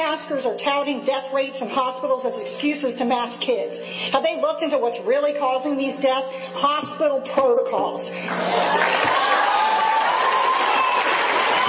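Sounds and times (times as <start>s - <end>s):
speech: 0.0s - 9.4s
crowd cheering and applauding: 8.3s - 11.6s
higher whoops: 8.5s - 11.6s.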